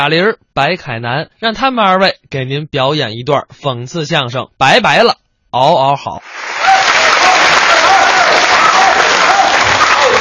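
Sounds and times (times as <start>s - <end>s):
speech: 0.0s - 6.7s
audience applause: 6.2s - 10.1s.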